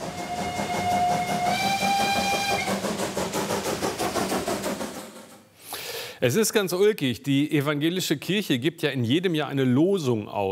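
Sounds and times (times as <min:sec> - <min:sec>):
steam locomotive whistle: 0:00.0 - 0:03.1
steam locomotive chugging: 0:00.0 - 0:06.0
speech: 0:06.2 - 0:10.4.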